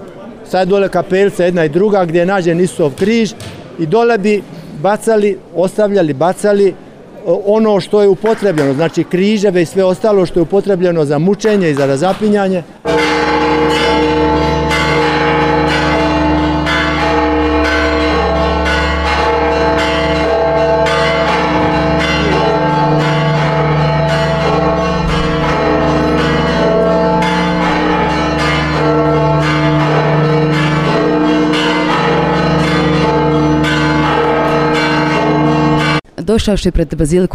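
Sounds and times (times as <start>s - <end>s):
speech: 0.5s - 12.8s, 36.3s - 37.3s
church bells ringing at the Basilica of the Holy Sepulchre: 12.8s - 36.1s.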